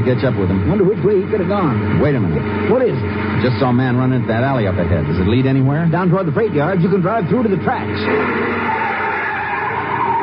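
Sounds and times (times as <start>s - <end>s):
speech: 0.0s - 8.8s
car tires skidding to a stop: 7.9s - 10.2s.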